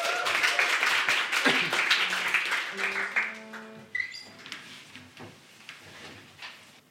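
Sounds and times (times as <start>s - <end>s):
audience applause: 0.0s - 3.9s.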